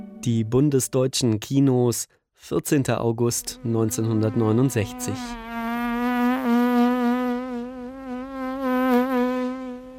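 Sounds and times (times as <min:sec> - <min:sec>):
speech: 0:00.2 - 0:05.4
housefly buzzing: 0:03.5 - 0:09.9.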